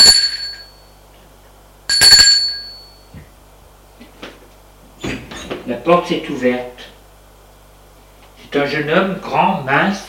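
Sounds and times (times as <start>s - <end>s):
apartment doorbell chimes: 1.9s - 3.1s
speech: 5.8s - 6.8s, 8.6s - 10.0s.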